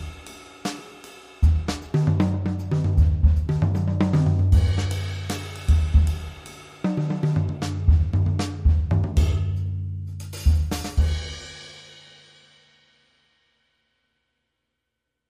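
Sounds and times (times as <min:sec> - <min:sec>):
cool jazzy music: 0:00.0 - 0:06.4, 0:07.0 - 0:11.2.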